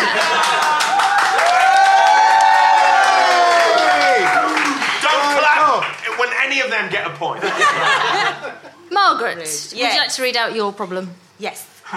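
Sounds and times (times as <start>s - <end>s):
laughter: 0.0s - 1.1s, 7.4s - 8.9s
crowd clapping and cheering: 0.0s - 6.6s
whoops and shouts: 0.7s - 4.8s
speech: 9.3s - 11.9s.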